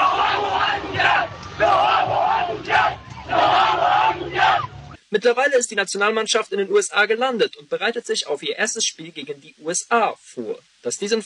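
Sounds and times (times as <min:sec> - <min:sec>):
fans cheering: 0:00.0 - 0:05.0
speech: 0:05.1 - 0:11.2.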